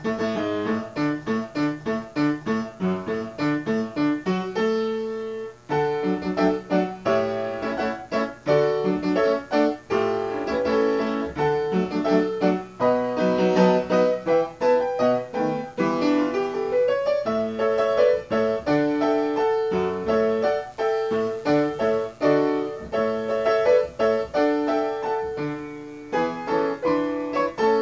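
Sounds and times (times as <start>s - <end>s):
military march on piano: 0.0s - 27.7s.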